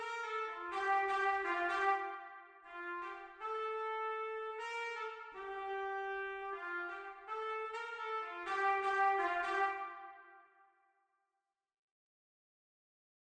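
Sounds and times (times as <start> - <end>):
B-flat trumpet: 0.0 - 10.6.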